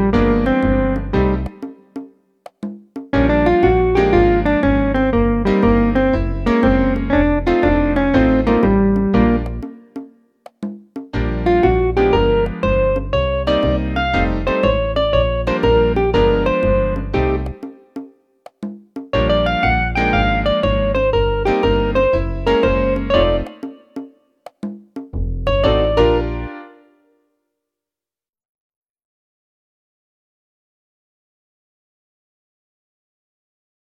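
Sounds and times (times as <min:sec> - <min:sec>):
solo swing music: 0:00.0 - 0:26.9.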